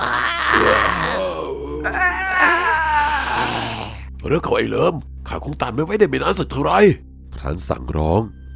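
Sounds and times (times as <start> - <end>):
eerie ghostly wailing and moaning: 0.0 - 4.0
speech: 4.2 - 8.4.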